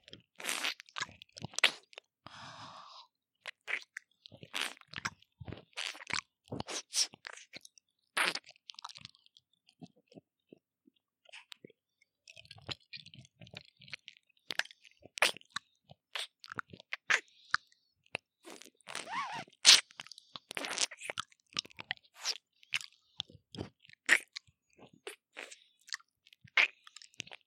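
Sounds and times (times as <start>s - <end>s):
ASMR ear licking sounds: 0.2s - 2.4s, 3.4s - 7.6s, 12.4s - 27.4s.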